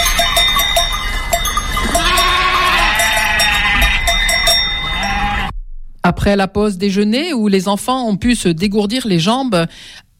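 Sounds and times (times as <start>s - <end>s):
flock bells clanking: 0.0s - 5.5s
ewes and sheep bleating: 1.1s - 5.5s
speech: 6.1s - 10.0s.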